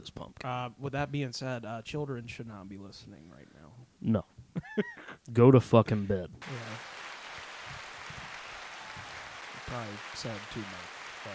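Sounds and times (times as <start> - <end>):
speech: 0.0 - 6.8, 9.7 - 11.3
canned applause sound effect from button: 6.4 - 11.3.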